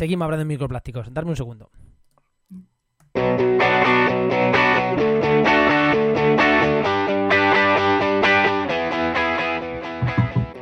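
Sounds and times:
speech: 0.0 - 1.8, 2.5 - 5.2
podcast section intro music by a distorted electric band: 3.1 - 10.6.

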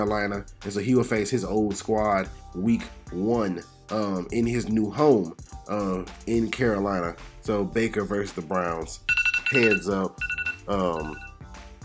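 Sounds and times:
speech: 0.0 - 11.3
segment timer electronic alarm ringtone: 9.1 - 11.4.

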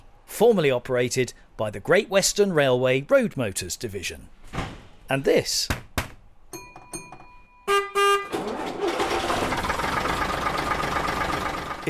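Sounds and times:
speech: 0.4 - 5.8
horn of a 1965 AEC Routemaster bus: 7.6 - 8.5
1965 AEC Routemaster bus engine rumble: 8.4 - 11.8.

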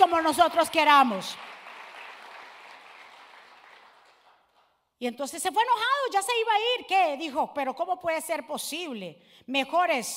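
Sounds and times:
speech: 0.0 - 1.5, 5.0 - 10.1
audience applause: 1.4 - 4.6.

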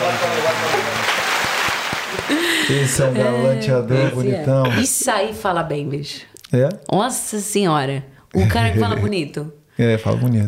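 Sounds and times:
laughter: 0.0 - 1.4, 2.1 - 5.1
applause: 0.0 - 3.0
speech: 2.7 - 10.4.

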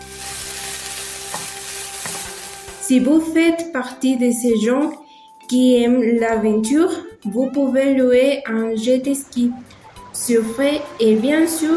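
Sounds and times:
fish sizzling on a grill: 0.0 - 2.9
speech: 2.9 - 11.7.

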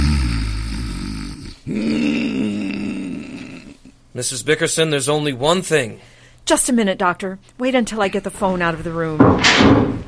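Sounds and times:
man's loud roaring snore: 0.0 - 3.8
speech: 1.7 - 2.0, 4.2 - 10.0.

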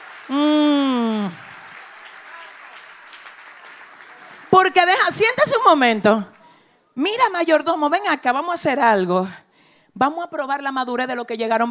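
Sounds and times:
audience applauding loudly: 0.0 - 5.2
speech: 0.3 - 0.6, 4.6 - 6.3, 7.0 - 9.4, 10.0 - 11.7.

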